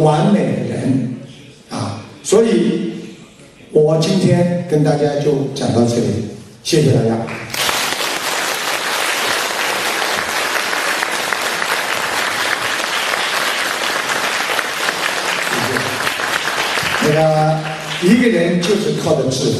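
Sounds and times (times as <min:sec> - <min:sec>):
speech: 0:00.0 - 0:00.6, 0:02.3 - 0:02.9, 0:03.8 - 0:07.6, 0:17.2 - 0:19.5
applause from a small audience after a talk: 0:07.4 - 0:18.7.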